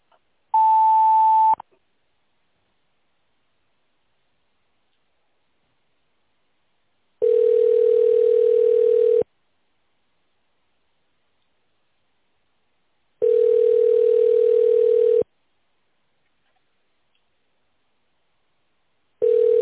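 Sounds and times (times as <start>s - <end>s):
telephone signal tones after an office automated greeting: 0.6s - 1.6s, 7.2s - 9.2s, 13.2s - 15.2s, 19.2s - 19.6s.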